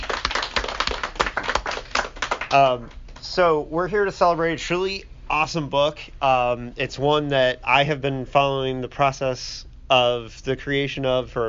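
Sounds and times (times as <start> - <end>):
audience applause: 0.0 - 2.8
speech: 2.5 - 11.4.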